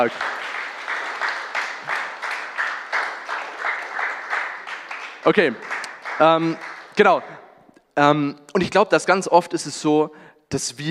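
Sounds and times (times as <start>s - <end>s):
speech: 0.0s - 0.4s, 5.2s - 7.4s, 8.0s - 10.9s
short applause: 0.0s - 7.4s.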